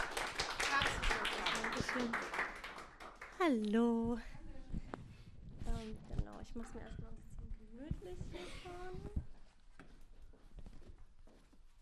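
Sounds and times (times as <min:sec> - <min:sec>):
audience applause: 0:00.0 - 0:03.5
speech: 0:02.0 - 0:02.3, 0:03.4 - 0:04.4, 0:05.8 - 0:09.2.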